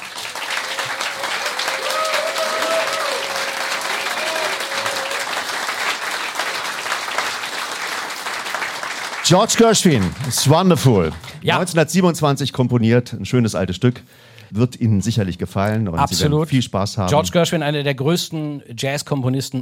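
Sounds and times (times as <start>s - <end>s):
big applause from a live audience: 0.0s - 11.6s
speech: 9.3s - 19.5s.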